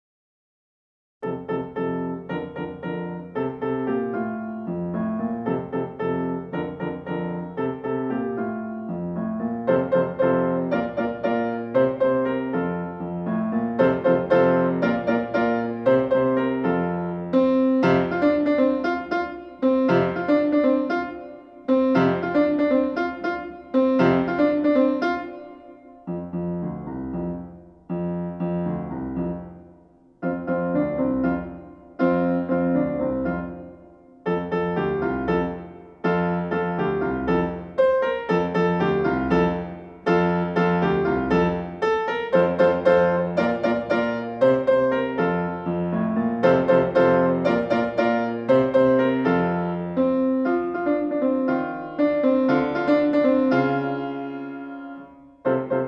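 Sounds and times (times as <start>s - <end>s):
piano: 1.2s - 55.8s.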